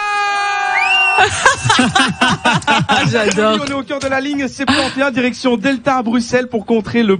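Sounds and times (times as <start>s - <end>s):
bus passengers cheering and shouting loudly: 0.0s - 2.9s
laughter: 1.2s - 4.8s
speech: 1.2s - 7.1s.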